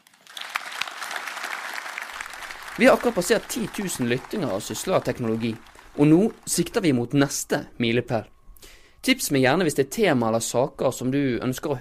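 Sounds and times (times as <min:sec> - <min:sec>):
audience applause: 0:00.0 - 0:07.4
speech: 0:02.8 - 0:08.3, 0:09.0 - 0:11.8.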